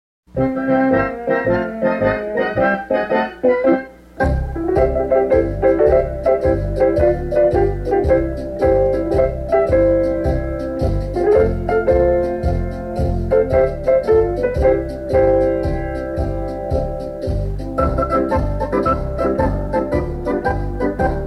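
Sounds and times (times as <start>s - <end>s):
instrumental music: 0.3s - 21.2s.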